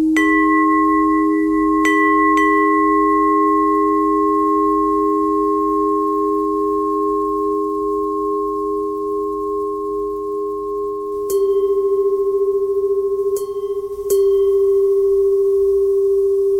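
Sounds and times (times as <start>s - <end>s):
bell buzzing: 0.2s - 16.5s.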